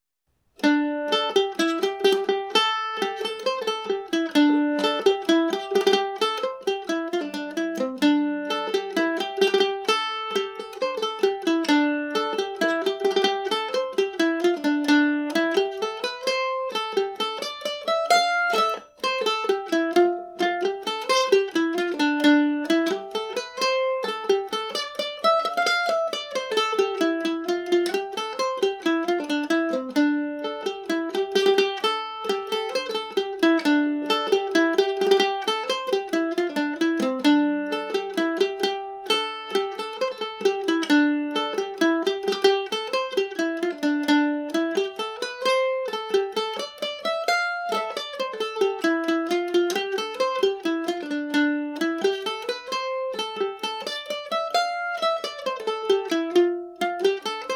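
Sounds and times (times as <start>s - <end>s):
mandolin: 0.3s - 57.5s.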